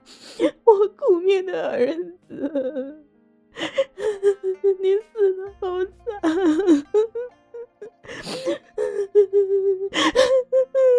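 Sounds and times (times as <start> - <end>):
woman crying into a pillow: 0.0 - 3.0, 3.6 - 10.9
speech: 0.4 - 7.4, 8.1 - 10.9.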